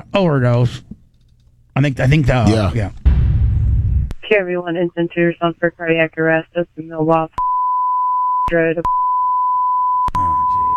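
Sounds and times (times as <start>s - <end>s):
speech: 0.2s - 0.9s, 1.8s - 3.0s, 4.3s - 7.5s, 8.5s - 9.0s
high sine-tone censor beep bleeping out an address: 7.4s - 10.7s.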